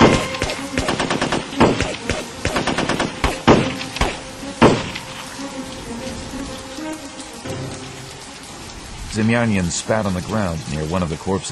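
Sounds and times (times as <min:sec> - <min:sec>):
gunfire: 0:00.0 - 0:04.9
speech: 0:09.2 - 0:11.5.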